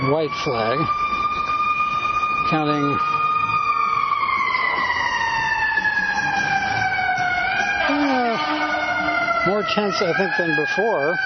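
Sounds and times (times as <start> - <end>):
fire engine siren going by a park: 0.0 - 11.2
speech: 0.1 - 1.2, 2.5 - 3.1, 9.4 - 11.2.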